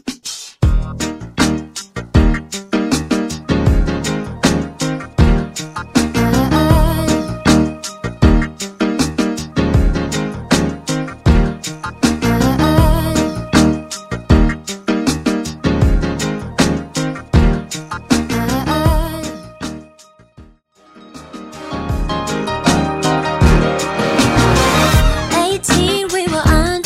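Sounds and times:
mixshow intro music: 0:00.7 - 0:20.2, 0:20.8 - 0:26.7.

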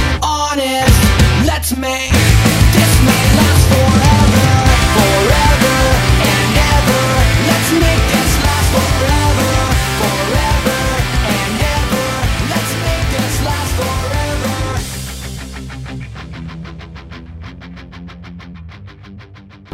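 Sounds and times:
drum: 0:00.9 - 0:01.4, 0:02.1 - 0:15.3.

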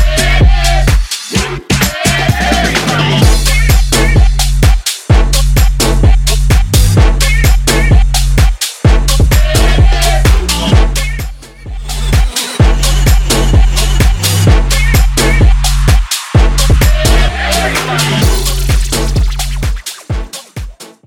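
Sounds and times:
bootleg house music beat: 0:00.0 - 0:21.0.

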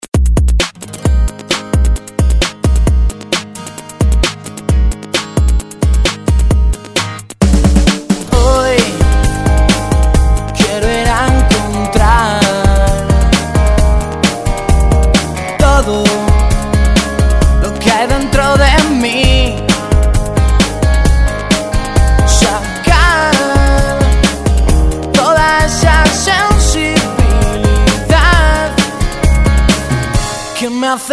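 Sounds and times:
drum beat: 0:00.0 - 0:30.6.

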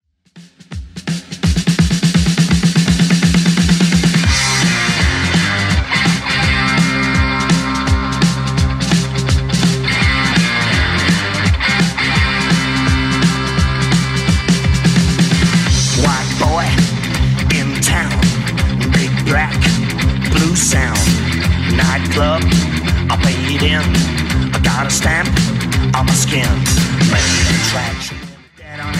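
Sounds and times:
clean 70s drum loop: 0:00.3 - 0:28.9.

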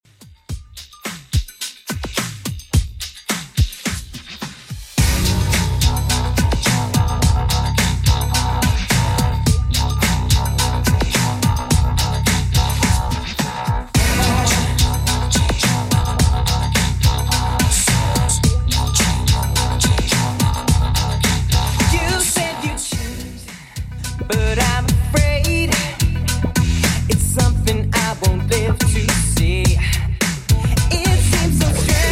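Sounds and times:
90s-style music at 107 bpm: 0:00.2 - 0:32.1.

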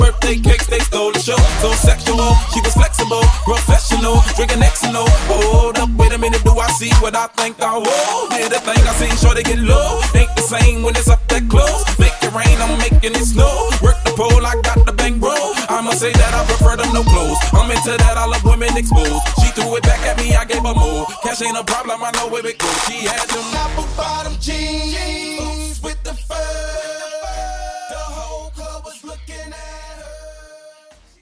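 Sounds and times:
low Afro hype bootleg dance beat: 0:00.0 - 0:24.9.

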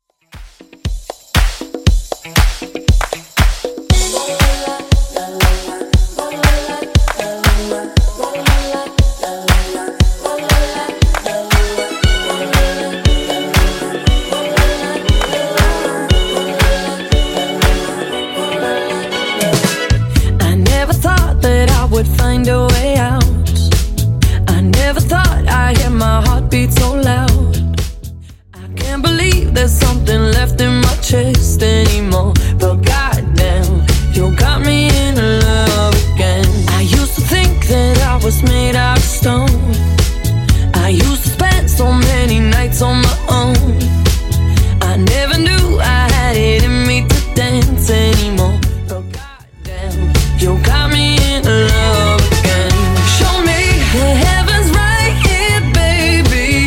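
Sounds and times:
Top40 extended pop dance track at 118 bpm: 0:00.4 - 0:28.1, 0:28.7 - 0:56.6.

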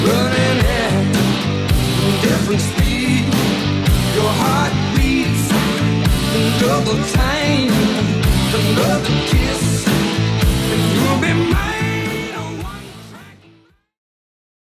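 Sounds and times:
80s rock music: 0:00.0 - 0:13.8.

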